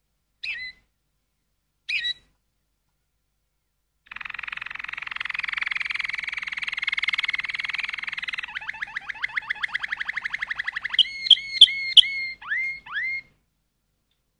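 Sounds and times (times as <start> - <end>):
canary running through varied rolls: 0.4 - 0.8, 1.9 - 2.2, 4.1 - 13.3.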